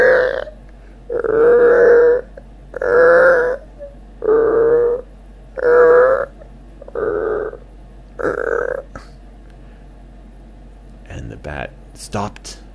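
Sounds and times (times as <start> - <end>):
voice imitating creaky stairs: 0.0 - 5.0, 5.6 - 7.6, 8.2 - 9.2.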